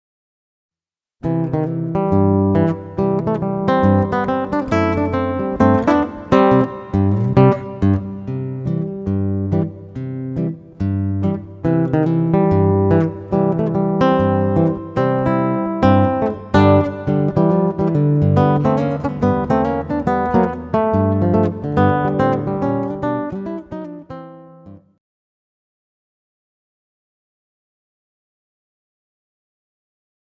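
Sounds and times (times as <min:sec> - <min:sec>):
guitar solo: 0:01.2 - 0:24.9.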